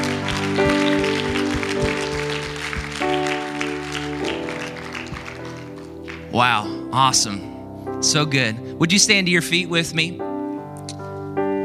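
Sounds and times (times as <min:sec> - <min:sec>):
audience clapping hands: 0:00.0 - 0:06.8
speech: 0:06.4 - 0:10.3.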